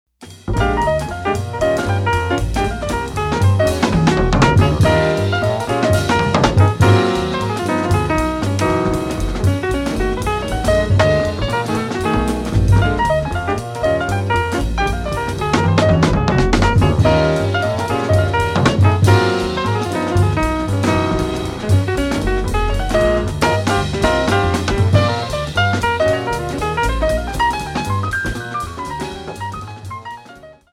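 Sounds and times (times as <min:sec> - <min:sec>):
blues music: 0:00.2 - 0:30.7.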